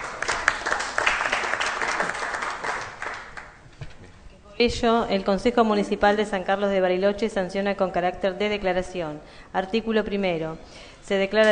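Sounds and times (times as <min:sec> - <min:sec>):
audience applause in council chamber: 0:00.0 - 0:03.6
speech: 0:04.6 - 0:11.5.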